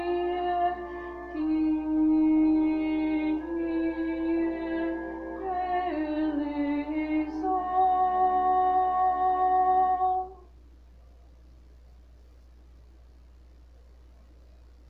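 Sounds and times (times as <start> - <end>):
contralto voice: 0.0 - 10.5.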